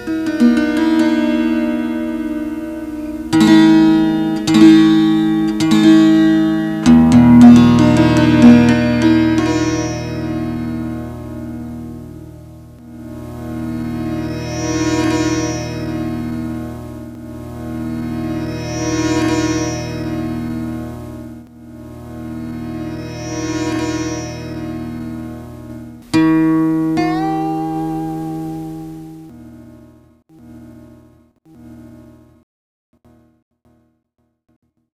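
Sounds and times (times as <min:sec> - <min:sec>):
multi-stringed fretless harp-sitar being tuned: 0:00.0 - 0:30.5.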